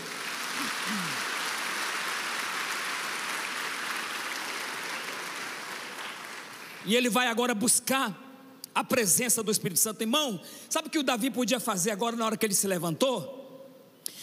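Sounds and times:
audience applause: 0.0s - 6.9s
speech: 6.8s - 8.2s, 8.8s - 13.4s.

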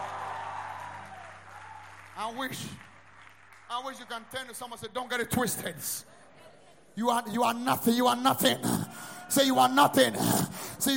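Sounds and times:
audience clapping: 0.0s - 4.6s
speech: 2.2s - 2.9s, 3.7s - 6.1s, 7.0s - 10.9s.

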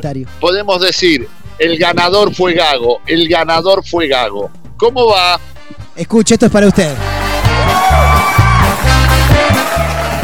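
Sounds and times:
speech: 0.0s - 7.1s
listeners applauding and cheering: 6.7s - 10.2s.

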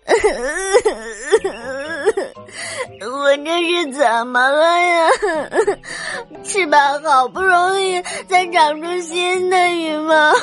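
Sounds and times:
voice performing sad wailing sobs of a little goose: 0.1s - 2.3s
speech: 3.6s - 10.4s.

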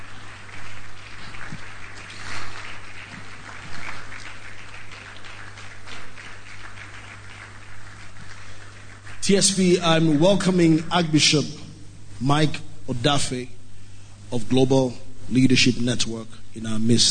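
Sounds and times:
church congregation applauding: 0.0s - 11.7s
speech: 9.3s - 11.6s, 12.2s - 13.6s, 14.3s - 17.0s.

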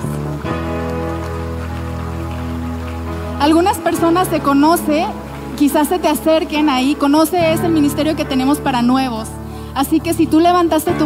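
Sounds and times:
audience applauding: 0.0s - 8.7s
speech: 3.4s - 11.0s.

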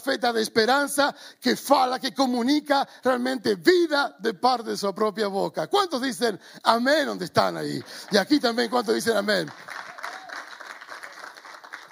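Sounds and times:
speech: 0.0s - 9.8s
audience applause: 7.8s - 11.9s.

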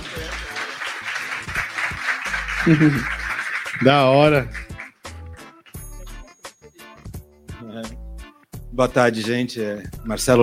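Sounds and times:
laughter: 0.0s - 4.1s
audience clapping: 0.0s - 6.0s
speech: 2.6s - 3.2s, 3.8s - 4.6s, 8.8s - 10.4s.

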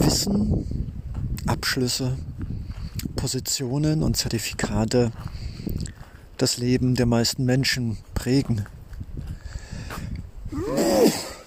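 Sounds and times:
speech: 0.1s - 2.4s, 3.1s - 5.8s, 6.4s - 8.8s
sneeze: 10.6s - 11.4s.

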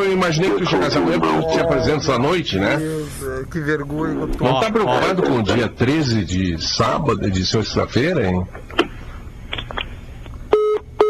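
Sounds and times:
speech: 0.1s - 8.6s
electronic phone beeps after a dropped call: 10.5s - 11.0s.

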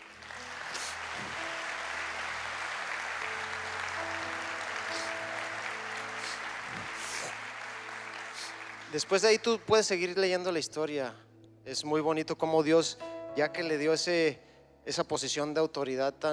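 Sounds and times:
audience applauding: 0.0s - 10.0s
speech: 8.9s - 16.3s.

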